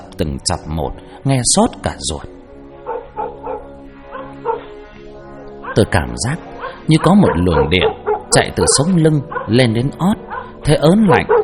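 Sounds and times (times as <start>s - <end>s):
speech: 0.2s - 2.4s, 5.8s - 11.4s
village dogs barking and howling: 2.7s - 11.4s.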